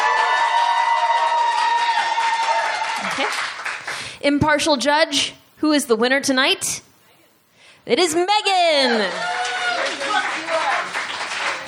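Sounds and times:
crowd cheering: 0:00.0 - 0:03.9, 0:08.8 - 0:11.6
audience applause: 0:00.0 - 0:04.1, 0:09.1 - 0:11.6
speech: 0:04.2 - 0:06.9, 0:07.9 - 0:09.3.

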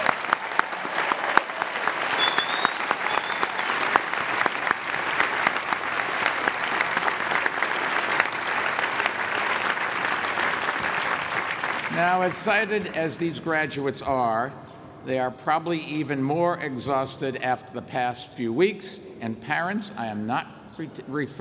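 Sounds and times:
commencement crowd round of applause for the class of 2014: 0:00.0 - 0:13.0
speech: 0:12.0 - 0:21.3.

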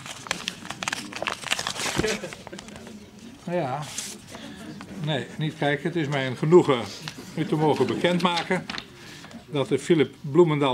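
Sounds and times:
envelope torn open with trembling fingers: 0:00.0 - 0:02.8
speech: 0:02.0 - 0:02.7, 0:03.5 - 0:04.0, 0:05.0 - 0:08.8, 0:09.5 - 0:10.7.

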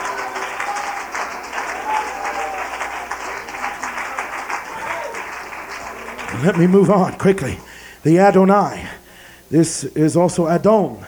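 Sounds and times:
large crowd applause: 0:00.0 - 0:07.7
speech: 0:06.4 - 0:11.0.

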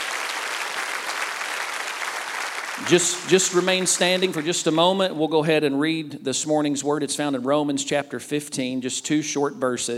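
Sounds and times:
audience hand clap of praise: 0:00.0 - 0:05.1
speech: 0:02.8 - 0:09.9.

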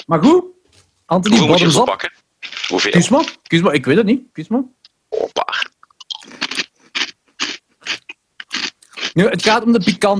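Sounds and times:
speech: 0:00.0 - 0:04.8, 0:09.2 - 0:10.1
Flamin' Hot Cheetos being chewed: 0:02.4 - 0:03.5, 0:06.0 - 0:10.0.

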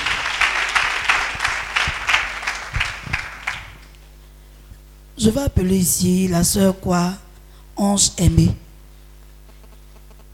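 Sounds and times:
church congregation clapping in a steady beat in praise of Jesus: 0:00.0 - 0:04.0
speech: 0:05.2 - 0:07.2, 0:07.8 - 0:08.6.

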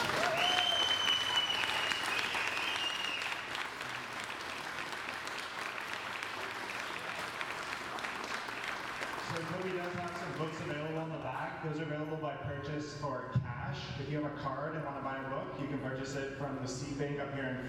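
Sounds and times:
round of applause: 0:00.0 - 0:11.1
speech: 0:11.6 - 0:17.6.

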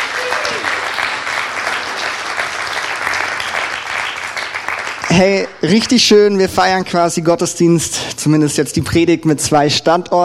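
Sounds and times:
large audience applauding: 0:00.0 - 0:05.5
speech: 0:05.2 - 0:10.2.

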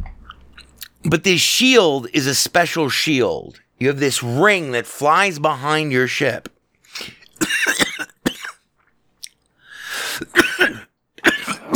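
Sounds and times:
speech: 0:01.0 - 0:07.2
person coughing and choking while trying to talk: 0:07.4 - 0:08.6, 0:10.2 - 0:11.7
strained wheeze: 0:09.6 - 0:10.4.

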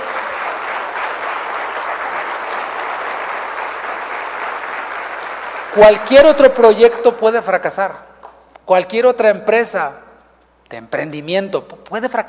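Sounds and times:
audience applause: 0:00.0 - 0:06.3
speech: 0:05.8 - 0:08.1, 0:08.7 - 0:10.0, 0:10.7 - 0:12.2.

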